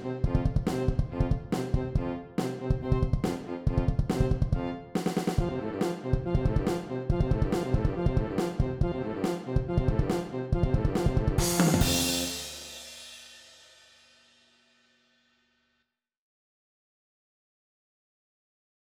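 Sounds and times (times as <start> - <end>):
rhythmic wind instrument pattern at 140bpm: 0.0 - 13.1.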